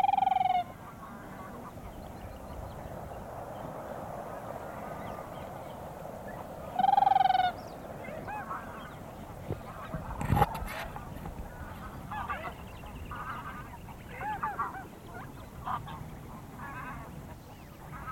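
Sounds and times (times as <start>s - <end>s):
Siberian crane clear musical fluting calls: 0.0s - 1.9s, 6.3s - 9.0s, 9.8s - 18.1s.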